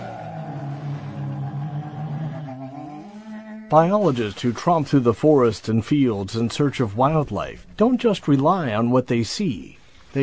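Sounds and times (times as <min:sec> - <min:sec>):
bear moaning growl: 0:00.0 - 0:03.9
speech: 0:03.7 - 0:10.2.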